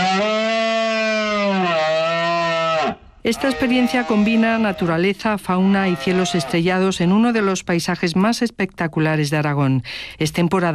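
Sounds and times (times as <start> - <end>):
red deer stags bellowing during rut: 0.0 - 5.0, 5.6 - 6.7
speech: 3.3 - 10.7.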